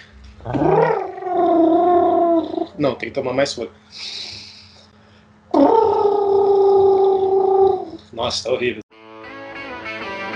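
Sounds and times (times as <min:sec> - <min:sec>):
speech: 0:00.4 - 0:00.7, 0:02.8 - 0:04.2, 0:08.2 - 0:08.8
person imitating a pigeon's call: 0:00.5 - 0:02.8, 0:05.5 - 0:08.1.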